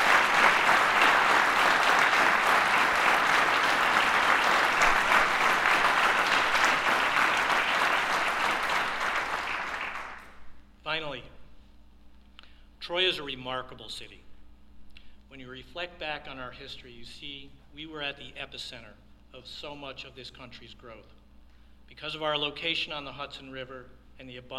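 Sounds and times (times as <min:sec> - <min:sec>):
audience applause: 0:00.0 - 0:10.4
speech: 0:13.6 - 0:14.3, 0:15.6 - 0:21.2, 0:21.9 - 0:24.5.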